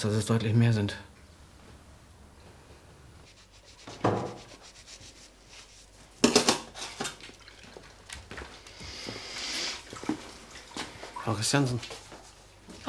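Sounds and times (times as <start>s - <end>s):
speech: 0.0s - 1.1s, 11.4s - 12.0s
washing dishes by hand: 6.2s - 12.3s.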